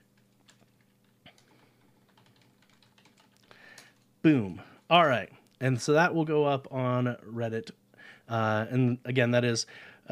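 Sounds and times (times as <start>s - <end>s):
computer keyboard typing: 0.0s - 4.1s
low hiss: 0.0s - 10.0s
speech: 4.2s - 10.0s.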